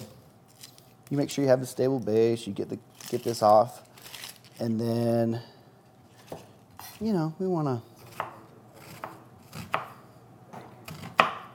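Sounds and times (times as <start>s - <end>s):
speech: 1.1s - 3.9s, 4.6s - 5.5s, 7.0s - 7.9s
knife dicing an onion on a cutting board: 8.0s - 11.5s.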